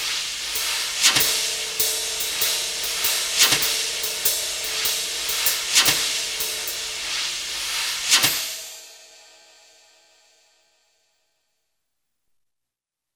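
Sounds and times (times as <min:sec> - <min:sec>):
brushes: 0:00.0 - 0:08.8.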